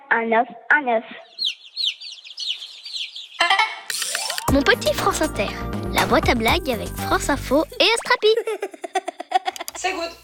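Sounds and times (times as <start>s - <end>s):
speech: 0.1s - 1.4s, 4.5s - 8.8s, 9.8s - 10.2s
hen clucking: 1.3s - 3.9s
continuous high-pitched chirping: 1.3s - 4.9s
laughter: 8.2s - 9.8s.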